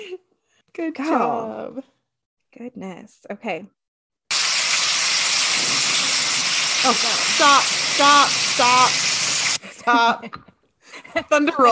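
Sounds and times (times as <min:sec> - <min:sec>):
speech: 0:00.2 - 0:02.0, 0:02.6 - 0:03.8, 0:06.8 - 0:09.1, 0:09.8 - 0:11.7
steady rain: 0:04.3 - 0:09.6.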